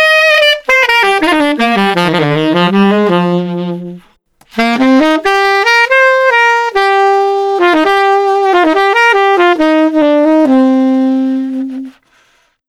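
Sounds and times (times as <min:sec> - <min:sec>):
emotional saxophone playing: 0:00.0 - 0:12.6.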